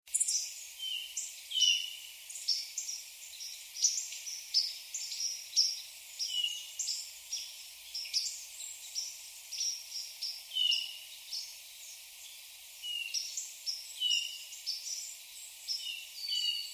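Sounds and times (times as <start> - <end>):
Hermit thrush Catharus guttatus calls: 0.1 - 12.0, 12.8 - 16.7.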